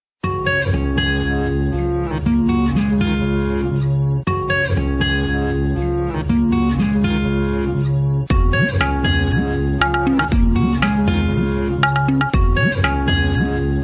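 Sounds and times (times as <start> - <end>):
background music ringtone: 0.2 - 13.8.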